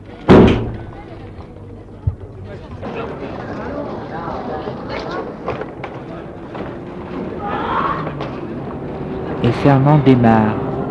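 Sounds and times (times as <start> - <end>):
murmur of indistinct voices: 0.0 - 10.9
car door slamming shut: 0.3 - 1.0
speech: 9.4 - 10.6.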